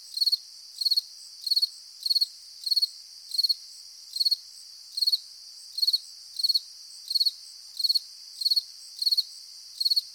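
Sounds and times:
cricket chirping: 0.0 - 10.1.

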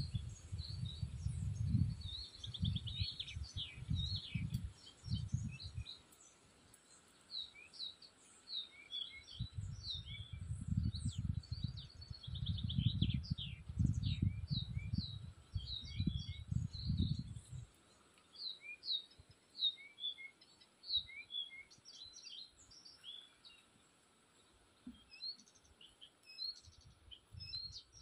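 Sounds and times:
birds chirping: 0.0 - 28.0.

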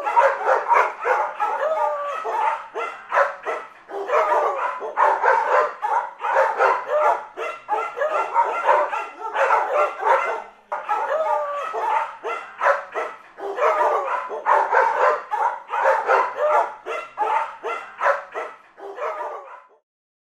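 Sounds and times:
dogs barking: 0.0 - 19.8.

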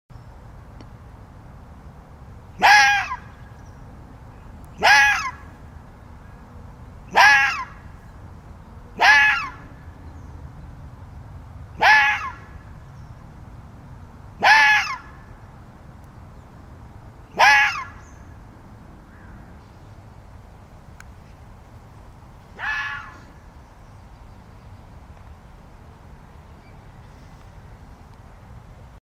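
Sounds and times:
quiet background hiss: 0.1 - 29.0
fox crying with hoarse calls: 2.6 - 3.2, 4.8 - 5.5, 7.1 - 7.8, 9.0 - 9.8, 11.8 - 12.5, 14.4 - 15.2, 17.3 - 18.2, 22.5 - 23.4.

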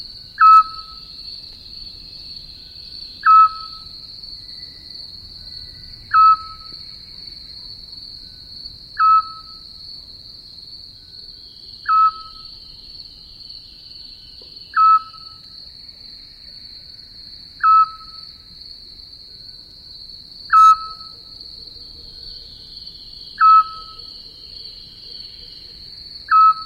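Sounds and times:
high insect drone: 0.0 - 26.6
Eurasian scops owl whistled hoots: 0.4 - 1.1, 3.2 - 3.9, 6.1 - 6.7, 9.0 - 9.6, 11.8 - 12.5, 14.7 - 15.4, 17.6 - 18.2, 20.5 - 21.2, 23.4 - 24.1, 26.3 - 26.6.

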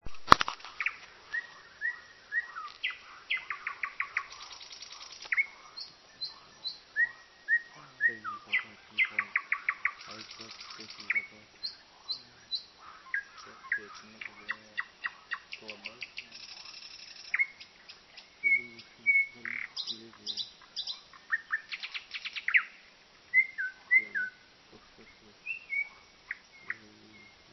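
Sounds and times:
common nightingale song: 0.0 - 27.5.

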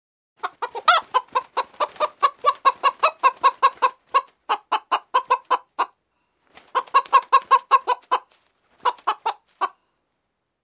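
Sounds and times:
chicken cackle: 0.4 - 9.8.

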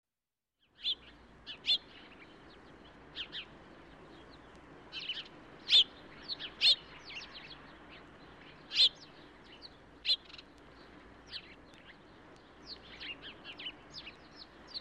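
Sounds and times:
sparrow chirping: 0.7 - 14.7.

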